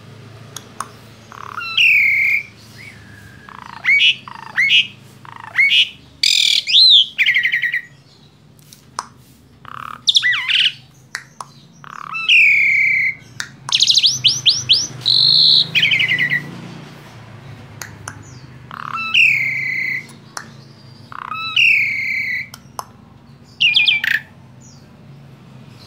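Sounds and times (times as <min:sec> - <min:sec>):
Asian pied starling squawks and whistles: 0:01.3 - 0:07.9, 0:09.7 - 0:10.8, 0:11.8 - 0:16.5, 0:18.7 - 0:20.1, 0:21.1 - 0:22.5, 0:23.6 - 0:24.3.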